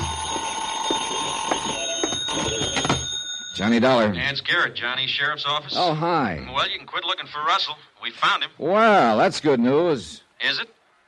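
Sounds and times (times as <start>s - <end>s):
telephone ringing: 0.0s - 4.3s
speech: 3.6s - 10.8s.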